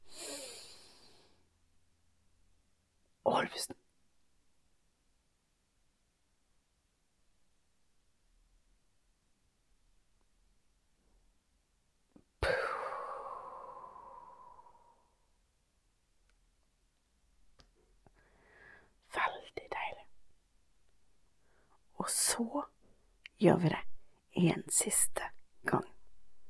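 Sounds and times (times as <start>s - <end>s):
deep breath in and out: 0.0s - 1.5s, 12.4s - 15.2s, 18.1s - 19.0s
speech: 3.3s - 3.8s, 22.1s - 22.8s, 23.4s - 25.9s.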